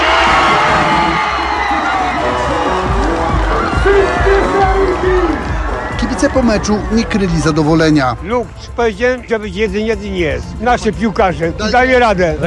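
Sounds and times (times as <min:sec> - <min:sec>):
football fans cheering in Warsaw fan zone: 0:00.0 - 0:08.2
speech: 0:06.3 - 0:12.4.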